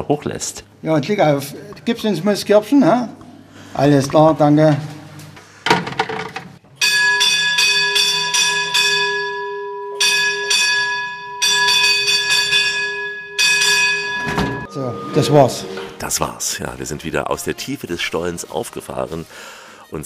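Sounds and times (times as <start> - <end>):
speech: 0.0 - 4.9, 15.2 - 20.0
mine shaft signal bell ringing: 6.8 - 16.3.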